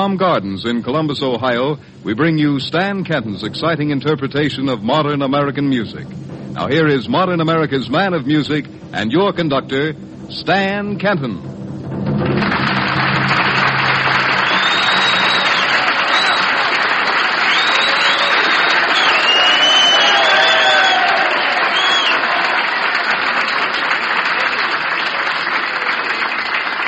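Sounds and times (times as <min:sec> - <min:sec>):
speech: 0:00.0 - 0:12.0
applause from a large audience: 0:12.2 - 0:26.8
cheers: 0:12.5 - 0:26.8
whistles: 0:14.2 - 0:16.7, 0:17.4 - 0:22.3.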